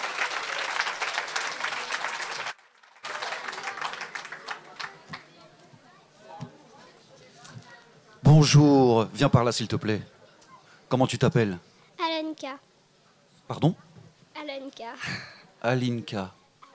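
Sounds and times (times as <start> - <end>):
audience applause: 0.0 - 5.6
speech: 8.4 - 10.2, 10.9 - 11.7, 13.6 - 13.8, 15.0 - 16.4.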